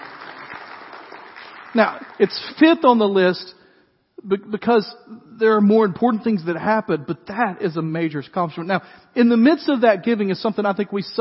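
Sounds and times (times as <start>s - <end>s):
few people clapping: 0.0s - 2.8s
speech: 1.7s - 3.6s, 4.2s - 11.1s.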